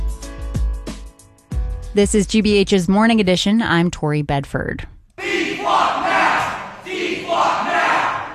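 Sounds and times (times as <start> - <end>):
speech: 2.0 - 4.9
protesters chanting, disrupting city council meeting in New Bedford: 5.2 - 8.3.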